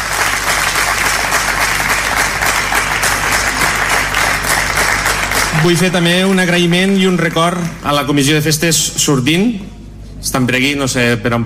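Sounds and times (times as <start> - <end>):
audience applause: 0.0 - 8.4
speech: 5.6 - 11.4.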